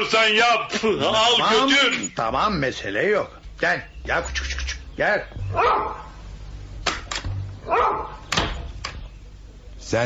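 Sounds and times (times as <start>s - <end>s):
speech: 0.1s - 6.1s, 7.7s - 8.2s, 9.9s - 10.0s
small dog barking: 5.5s - 6.1s, 7.6s - 8.2s.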